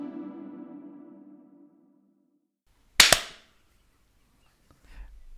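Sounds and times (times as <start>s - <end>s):
sync clap before recording: 3.0s - 3.5s.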